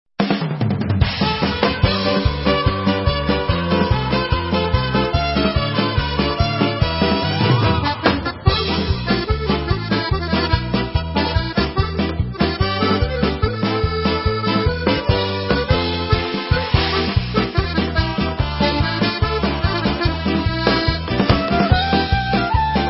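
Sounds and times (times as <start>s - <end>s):
instrumental music: 0.2s - 22.8s.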